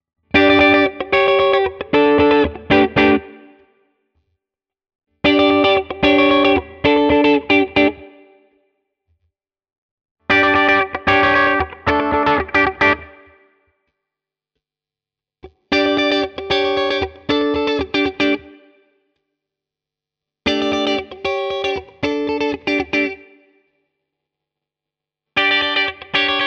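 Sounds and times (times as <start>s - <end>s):
Hagstroem clean electric guitar groove in all positions: 0.3s - 3.6s, 5.2s - 8.2s, 10.3s - 13.4s, 15.7s - 18.6s, 20.5s - 23.4s, 25.4s - 26.4s.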